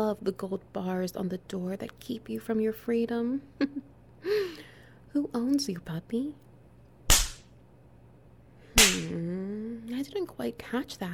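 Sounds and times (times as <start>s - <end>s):
speech: 0.1s - 6.5s, 8.8s - 11.1s
leather strap striking: 7.1s - 7.5s, 8.8s - 9.1s.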